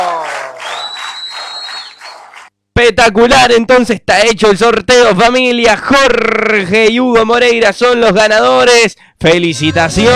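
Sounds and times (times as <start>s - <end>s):
audience applause: 0.0s - 2.5s
thin high whistling tone: 0.6s - 2.2s
speech: 2.9s - 10.1s.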